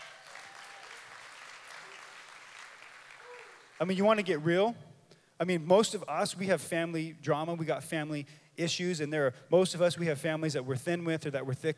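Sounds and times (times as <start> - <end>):
crowd clapping: 0.0 - 4.4
speech: 3.8 - 11.7.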